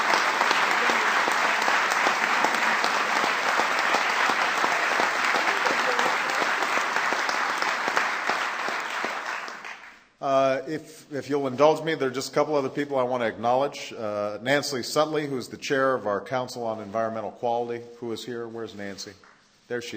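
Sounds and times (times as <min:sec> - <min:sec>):
large audience applause: 0:00.0 - 0:10.0
speech: 0:10.7 - 0:19.9.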